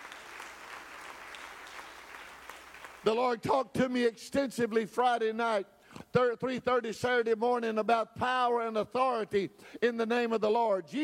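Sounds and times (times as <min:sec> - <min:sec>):
audience clapping hands: 0:00.0 - 0:03.1
speech: 0:03.0 - 0:11.0.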